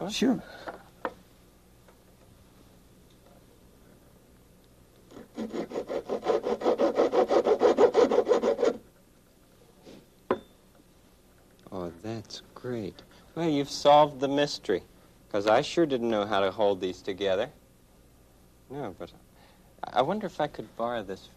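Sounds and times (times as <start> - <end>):
speech: 0.0 - 0.7, 12.6 - 17.6, 18.7 - 19.2, 19.8 - 21.3
hand saw cutting a wooden piece: 5.1 - 8.8.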